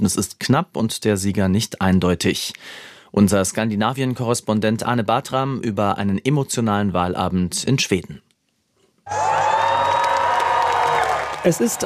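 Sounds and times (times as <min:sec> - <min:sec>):
speech: 0:00.0 - 0:08.3, 0:09.1 - 0:09.6, 0:11.4 - 0:11.8
Swedish Social Democrats crowd cheering on election night: 0:09.1 - 0:11.8.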